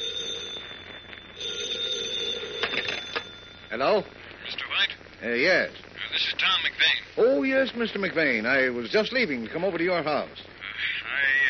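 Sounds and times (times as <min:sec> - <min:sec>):
telephone ringing: 0:00.0 - 0:04.2
speech: 0:03.7 - 0:10.6.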